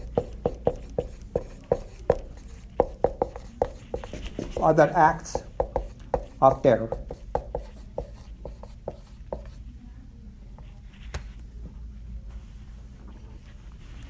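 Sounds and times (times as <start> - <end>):
pen strokes as a word is written out: 0.0 - 9.6
speech: 4.6 - 5.4, 6.4 - 7.0.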